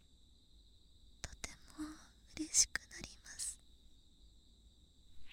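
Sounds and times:
left cotton swab ASMR: 0:01.2 - 0:03.6.

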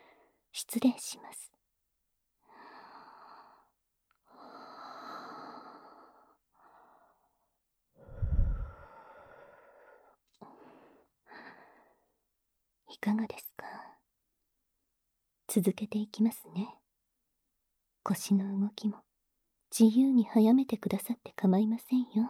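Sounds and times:
speech: 0:00.6 - 0:01.5, 0:13.0 - 0:13.5, 0:15.5 - 0:16.8, 0:18.0 - 0:19.1, 0:19.7 - 0:22.2
ASMR breathing into the listener's ear: 0:08.0 - 0:10.0.

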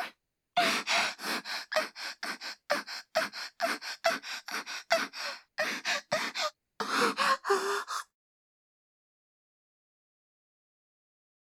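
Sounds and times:
asthmatic wheezing: 0:00.0 - 0:08.1
person panting: 0:00.0 - 0:08.1.

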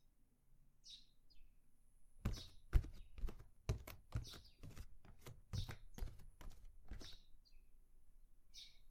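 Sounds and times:
ear cleaning scratching: 0:02.3 - 0:07.2.

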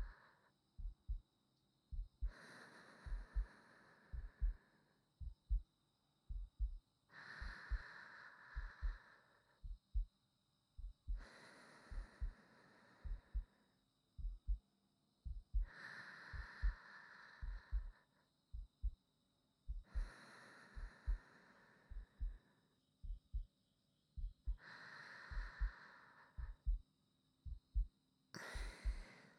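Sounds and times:
new wife's heartbeat: 0:00.8 - 0:01.2, 0:01.9 - 0:02.4, 0:03.0 - 0:04.6, 0:05.2 - 0:05.7, 0:06.3 - 0:06.8, 0:07.4 - 0:07.9, 0:08.5 - 0:09.0, 0:09.6 - 0:10.1, 0:10.8 - 0:12.4, 0:13.0 - 0:13.5, 0:14.2 - 0:14.6, 0:15.2 - 0:16.8, 0:17.4 - 0:19.0, 0:19.6 - 0:20.2, 0:20.8 - 0:21.3, 0:21.9 - 0:23.5, 0:24.2 - 0:24.7, 0:25.3 - 0:25.8, 0:26.4 - 0:28.0, 0:28.6 - 0:29.1
sleeping breathing: 0:02.2 - 0:04.9, 0:07.1 - 0:09.6, 0:11.1 - 0:13.6, 0:15.6 - 0:18.2, 0:19.8 - 0:22.6, 0:24.5 - 0:26.6, 0:28.4 - 0:29.3.

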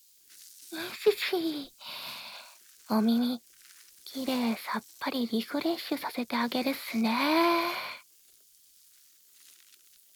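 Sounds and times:
speech: 0:00.7 - 0:01.9, 0:02.9 - 0:03.5, 0:04.1 - 0:07.9
breathy fizzing hiss imitating foam in the ear: 0:00.8 - 0:03.4, 0:04.1 - 0:08.1.

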